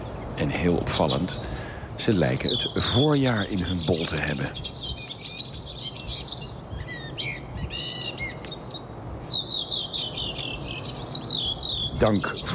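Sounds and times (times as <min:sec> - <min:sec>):
redwing singing: 0:00.0 - 0:12.5
speech: 0:00.4 - 0:04.8, 0:12.0 - 0:12.5.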